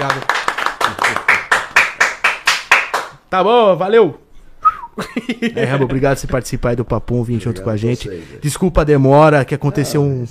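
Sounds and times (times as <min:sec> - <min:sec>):
speech: 0:00.0 - 0:00.3, 0:03.3 - 0:04.2, 0:05.0 - 0:10.2
audience clapping: 0:00.0 - 0:03.2.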